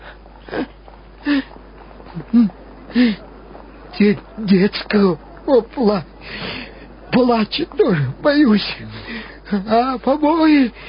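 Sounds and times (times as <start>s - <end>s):
sick person wheezing and breathing laboriously: 0.0s - 3.3s, 6.2s - 6.9s, 8.8s - 9.6s
speech: 2.3s - 3.2s, 4.0s - 10.8s.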